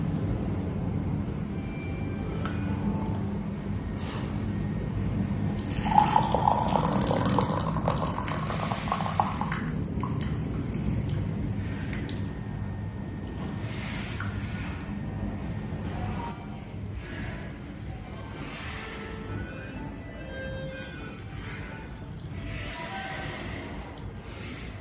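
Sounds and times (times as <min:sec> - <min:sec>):
low hum: 0:00.0 - 0:24.7
brewed Pu'er tea poured out of a teapot: 0:05.5 - 0:11.0.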